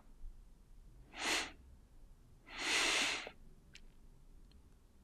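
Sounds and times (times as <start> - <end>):
deep nasal inhales: 1.1 - 1.6, 2.5 - 3.4
mouth exhales: 1.1 - 1.6, 2.5 - 3.4.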